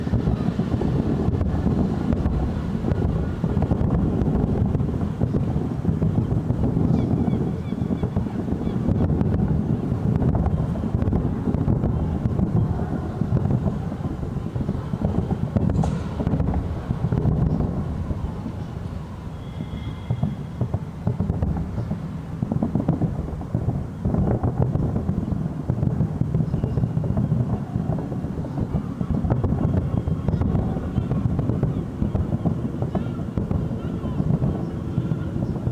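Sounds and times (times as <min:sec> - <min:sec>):
Republic Day fireworks: 0:00.0 - 0:35.7.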